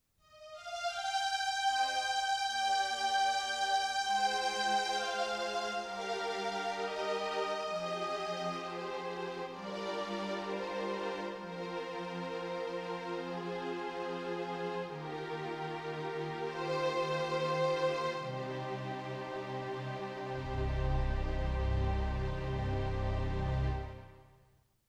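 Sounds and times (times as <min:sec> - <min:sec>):
strings: 0:00.4 - 0:24.4.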